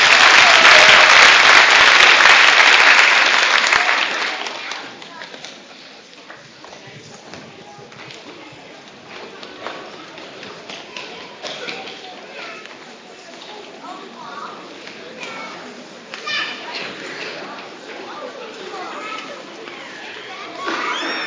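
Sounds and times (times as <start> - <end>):
church congregation applause after a song: 0.0 - 5.6.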